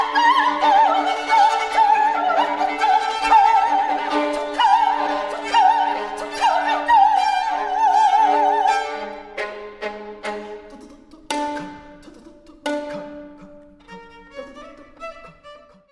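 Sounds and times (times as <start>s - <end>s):
two violins playing a duo: 0.0s - 15.8s.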